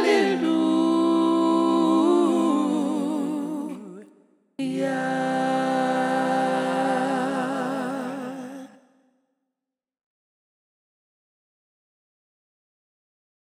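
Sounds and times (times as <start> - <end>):
a cappella gospel singing: 0.0 - 8.8.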